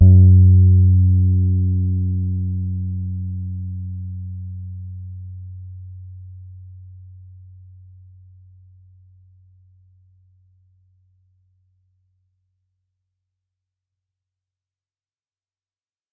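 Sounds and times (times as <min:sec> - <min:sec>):
Pedulla Thunderbass bass guitar soft E flat note: 0:00.0 - 0:07.8.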